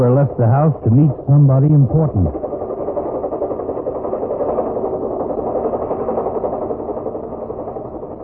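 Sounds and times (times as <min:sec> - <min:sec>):
speech: 0:00.0 - 0:02.5
helicopter engine roaring: 0:00.0 - 0:08.2.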